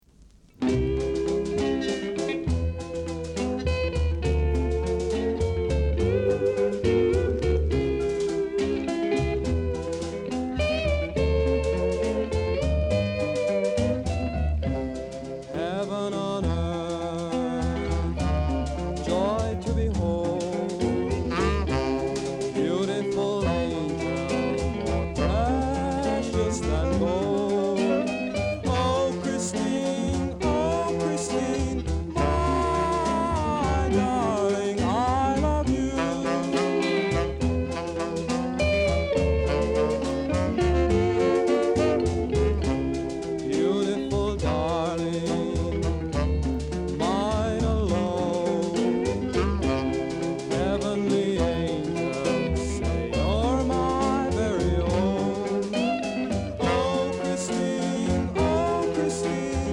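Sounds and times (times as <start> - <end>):
blues music: 0.0 - 59.7.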